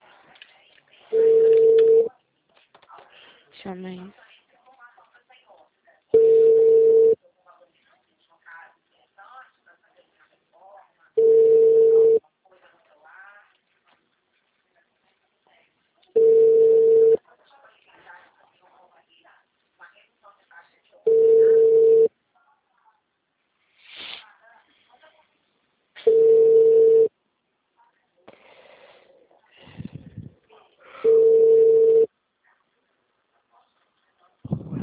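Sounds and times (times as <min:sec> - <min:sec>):
unanswered telephone ringing: 0:01.1 - 0:02.1, 0:06.2 - 0:07.2, 0:11.2 - 0:12.2, 0:16.2 - 0:17.2, 0:21.1 - 0:22.1, 0:26.0 - 0:27.1, 0:31.0 - 0:32.1
speech: 0:03.7 - 0:04.2.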